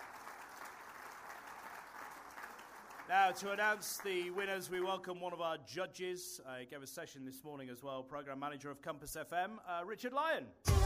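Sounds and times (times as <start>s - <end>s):
audience clapping at an awards ceremony: 0.0s - 4.9s
speech: 3.1s - 10.8s.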